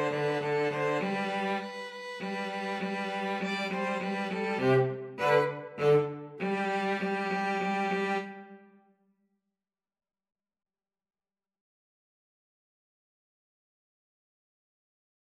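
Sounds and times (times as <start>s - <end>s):
fanfare played by two violins and cello: 0.0s - 8.6s.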